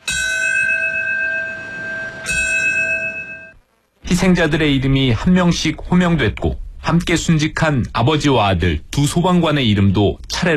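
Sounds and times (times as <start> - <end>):
memorial bell tolling at a 9/11 remembrance ceremony: 0.0 - 3.6
speech: 4.1 - 10.5.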